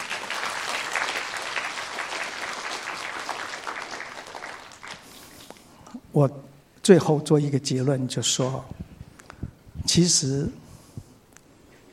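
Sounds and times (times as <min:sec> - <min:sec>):
audience applause: 0:00.0 - 0:05.2
speech: 0:06.2 - 0:08.8, 0:10.0 - 0:10.6.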